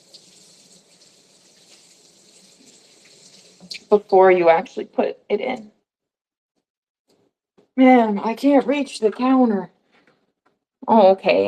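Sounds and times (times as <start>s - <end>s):
tap water running while washing food: 0.0s - 4.1s
speech: 3.7s - 5.8s, 7.8s - 9.8s, 10.9s - 11.4s.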